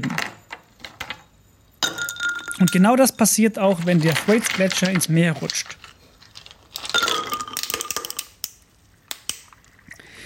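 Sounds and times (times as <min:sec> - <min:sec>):
ice cubes dropped into water glass: 0:01.8 - 0:08.3
speech: 0:02.6 - 0:05.8.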